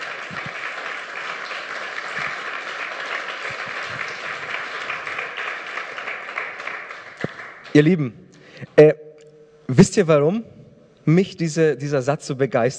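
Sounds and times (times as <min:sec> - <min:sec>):
audience applause: 0:00.0 - 0:07.9
speech: 0:07.8 - 0:09.0, 0:09.7 - 0:12.7.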